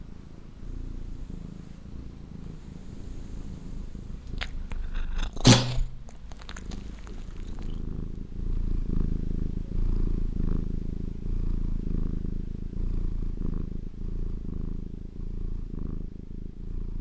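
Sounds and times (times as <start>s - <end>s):
cat purring: 0.0s - 16.9s
domestic cat sneezing: 4.4s - 7.7s.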